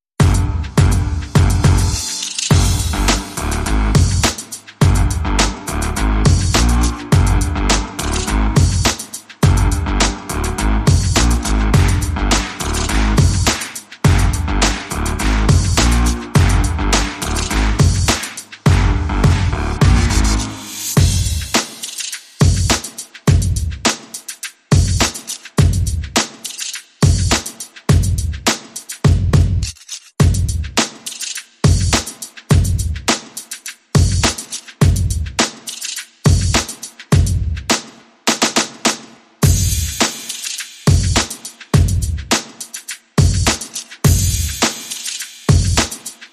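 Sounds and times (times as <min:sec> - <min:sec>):
bass: 0:00.2 - 0:21.1
drums: 0:00.2 - 0:46.3.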